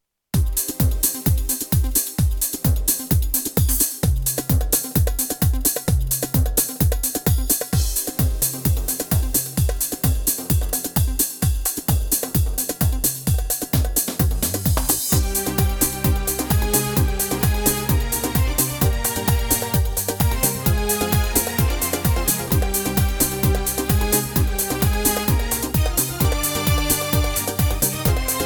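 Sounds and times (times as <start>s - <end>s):
Turkish pop on Korg Pa500 keyboard: 0.4s - 28.4s.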